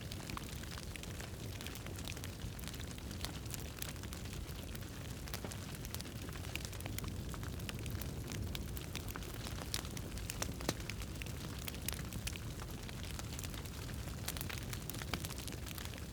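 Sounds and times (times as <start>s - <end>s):
fire: 0.0s - 16.1s.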